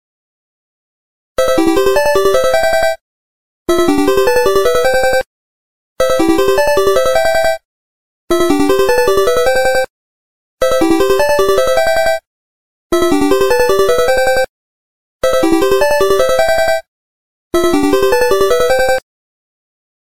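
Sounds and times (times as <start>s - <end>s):
original Sony phone ringtone: 1.4s - 3.0s, 3.7s - 5.3s, 6.0s - 7.6s, 8.3s - 9.9s, 10.6s - 12.3s, 12.9s - 14.5s, 15.2s - 16.9s, 17.6s - 19.0s.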